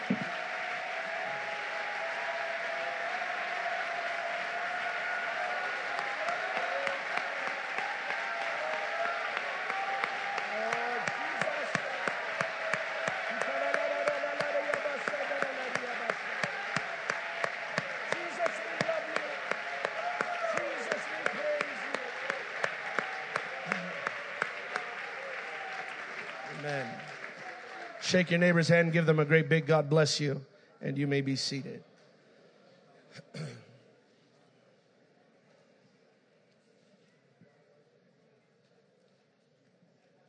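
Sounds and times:
audience cheering and shouting: 0:00.0 - 0:28.3
audience applause: 0:00.0 - 0:29.1
speech: 0:28.1 - 0:31.9.

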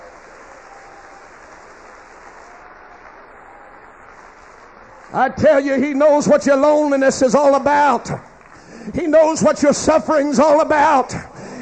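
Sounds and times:
audience clapping hands: 0:00.0 - 0:09.5
speech: 0:05.1 - 0:08.3, 0:08.9 - 0:11.3.

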